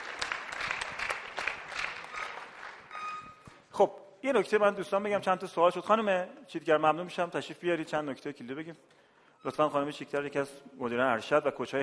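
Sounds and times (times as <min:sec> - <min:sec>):
audience applause: 0:00.0 - 0:03.1
speech: 0:03.8 - 0:11.8.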